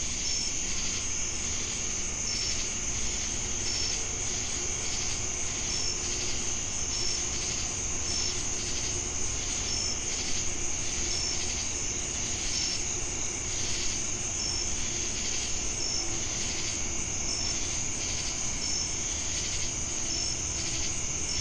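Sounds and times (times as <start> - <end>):
crickets trilling in Jamestown, North Carolina: 0.0 - 21.3.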